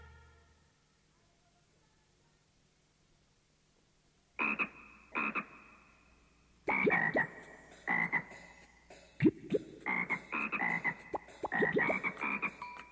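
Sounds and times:
frog croaking: 4.4s - 12.8s.

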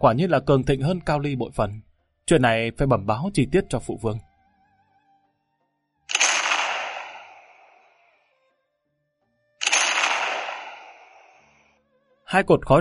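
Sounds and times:
speech: 0.0s - 4.3s, 12.3s - 12.7s
cannon explosion: 6.1s - 7.8s, 9.6s - 11.5s.

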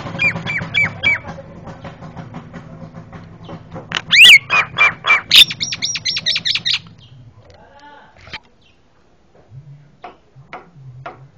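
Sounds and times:
myna-like bird calls and whistles: 0.2s - 1.3s, 3.4s - 7.2s.

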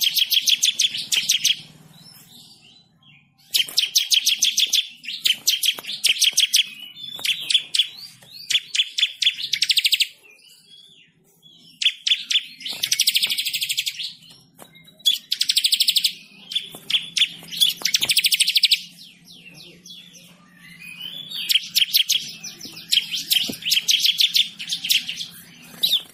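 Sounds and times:
bird chirping song: 0.0s - 26.1s.

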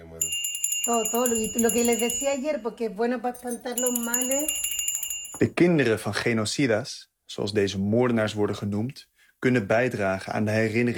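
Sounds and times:
small bell hanging between photos ringing: 0.0s - 5.6s
speech: 0.8s - 4.7s, 5.4s - 10.9s.

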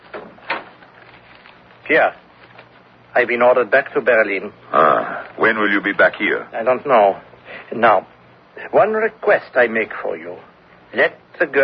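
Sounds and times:
door shut in a radio mystery drama: 0.1s - 0.8s
speech: 1.9s - 2.2s, 3.2s - 11.6s.

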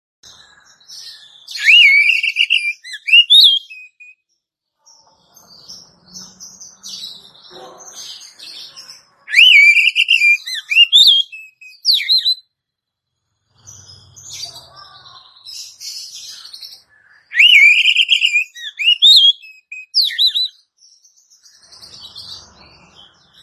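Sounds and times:
Oriental magpie-robin whistled phrase: 1.5s - 4.1s, 9.3s - 12.4s, 17.3s - 20.5s.

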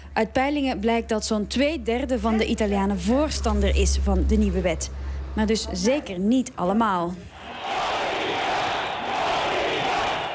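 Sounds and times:
speech: 0.2s - 7.3s
protesters chanting at a street demonstration in Rome: 7.3s - 10.3s.

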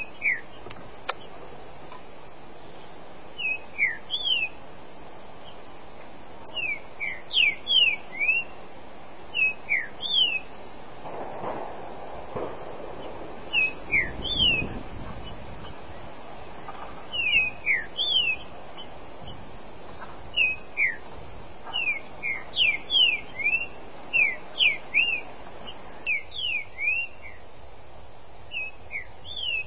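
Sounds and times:
Green-winged Saltator song of bright whistled notes: 0.0s - 1.3s, 3.4s - 5.6s, 6.4s - 8.6s, 9.3s - 10.5s, 12.6s - 16.0s, 17.1s - 19.4s, 20.3s - 21.1s, 21.7s - 27.6s, 28.5s - 29.6s.

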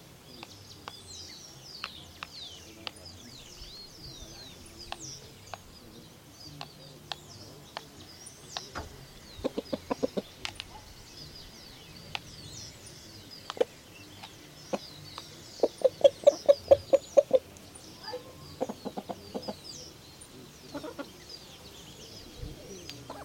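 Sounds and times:
chicken clucking: 9.4s - 10.9s, 15.6s - 17.5s, 18.1s - 19.8s, 20.6s - 21.3s, 22.9s - 23.2s.

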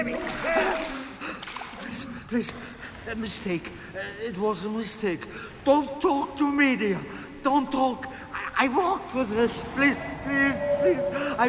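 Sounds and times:
water splashing as a man's head is forced into a filled basin: 0.0s - 1.9s
speech: 2.3s - 11.4s.

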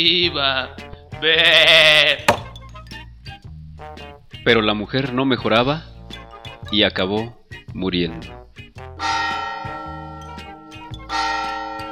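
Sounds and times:
speech: 0.0s - 2.3s, 4.4s - 5.9s, 6.7s - 8.4s
lamb bleating before being sacrificed: 1.2s - 2.3s
sharp thump: 2.3s - 2.6s.

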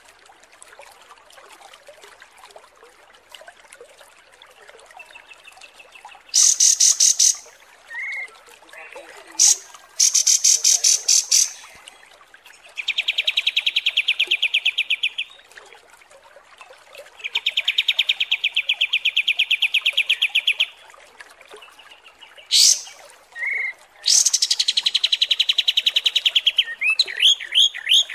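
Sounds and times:
kapas tembak chirps and trills: 6.3s - 8.3s, 9.4s - 11.8s, 12.7s - 15.4s, 17.2s - 20.8s, 21.9s - 28.1s.

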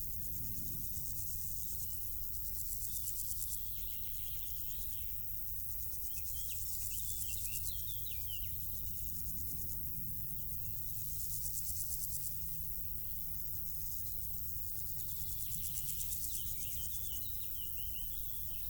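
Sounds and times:
insects stridulating in grass: 0.0s - 18.6s.

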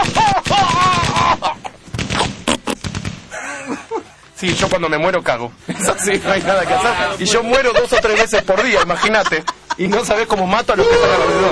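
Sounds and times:
laughter: 0.0s - 1.8s, 3.3s - 4.2s, 5.7s - 10.8s
Smith & Wesson gunshot sound effect: 0.0s - 3.3s, 4.4s - 4.9s
speech: 4.4s - 11.5s.

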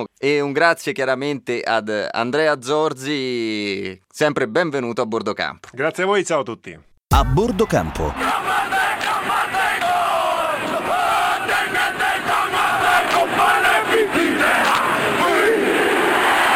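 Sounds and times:
speech: 0.0s - 8.6s
surrounding crowd: 7.1s - 16.5s
rugby team performing a haka war chant: 8.1s - 16.5s.

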